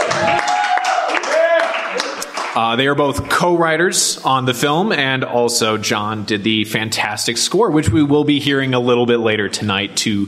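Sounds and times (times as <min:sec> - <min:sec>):
audience applause: 0:00.0 - 0:02.9
speech: 0:02.6 - 0:10.2.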